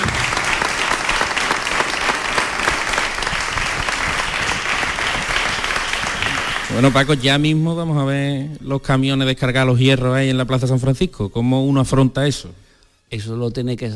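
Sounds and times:
audience applause: 0.0 - 7.5
speech: 6.8 - 13.9.

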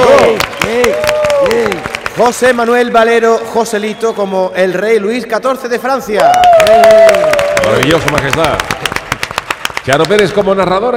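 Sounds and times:
loud voices cheering and calling out: 0.0 - 1.8, 6.2 - 8.2
audience clapping: 0.0 - 2.9, 6.2 - 10.7
speech: 2.2 - 8.8, 9.8 - 10.9.

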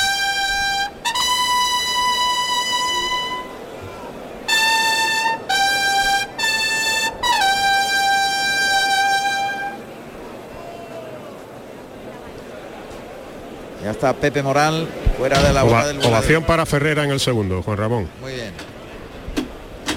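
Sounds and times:
bugles announcing the bull's entrance: 0.0 - 3.8, 4.4 - 10.2
low murmur: 0.0 - 19.9
speech: 14.0 - 18.7.

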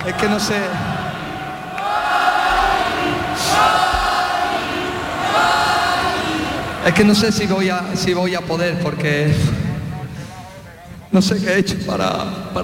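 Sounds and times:
speech: 0.0 - 1.0, 6.8 - 9.6, 11.1 - 12.6
large stadium crowd chanting a player's name: 0.0 - 7.3
constant roar of many voices: 0.0 - 8.4.

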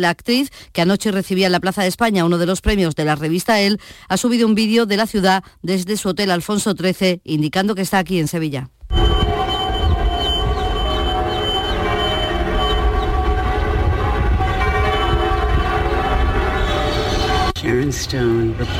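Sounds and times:
speech: 0.0 - 9.1, 17.7 - 18.7
church tower bells of the Giralda ringing: 8.9 - 17.6.

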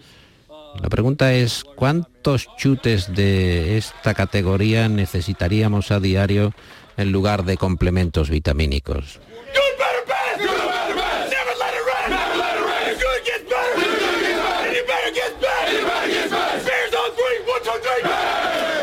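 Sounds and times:
speech: 0.8 - 9.6
crowd cheering: 2.5 - 7.9, 9.3 - 18.8
large crowd chanting: 9.3 - 18.8.

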